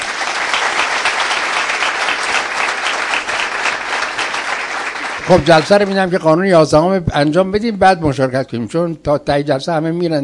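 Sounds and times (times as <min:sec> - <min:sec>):
audience clapping at a meeting: 0:00.0 - 0:06.4
speech: 0:05.3 - 0:10.2.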